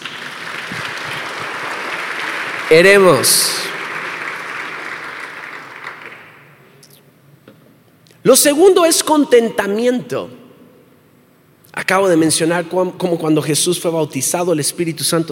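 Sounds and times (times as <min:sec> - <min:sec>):
audience applause: 0:00.0 - 0:06.5
speech: 0:02.7 - 0:03.7, 0:08.3 - 0:10.4, 0:11.9 - 0:15.3.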